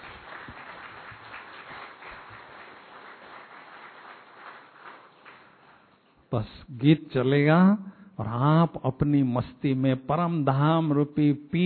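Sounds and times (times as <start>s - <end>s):
audience clapping: 0.0s - 6.2s
speech: 6.3s - 11.6s.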